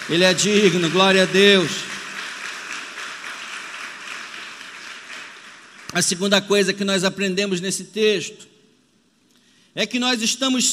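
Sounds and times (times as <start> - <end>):
audience applauding: 0.0 - 6.2
speech: 0.1 - 1.9, 6.0 - 8.5, 9.8 - 10.7.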